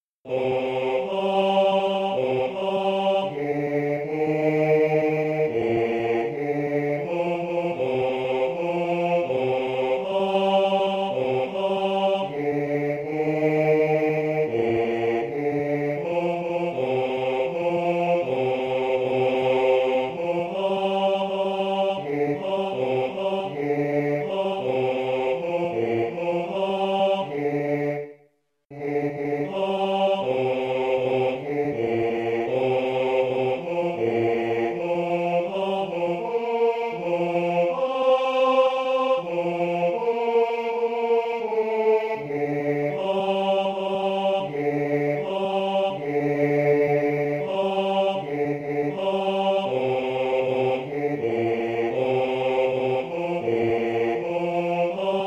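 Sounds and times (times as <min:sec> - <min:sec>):
bass choir: 0:00.2 - 0:55.2.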